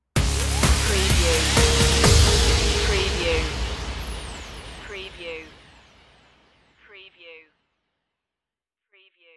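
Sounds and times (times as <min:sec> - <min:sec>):
music stinger: 0:00.2 - 0:06.7.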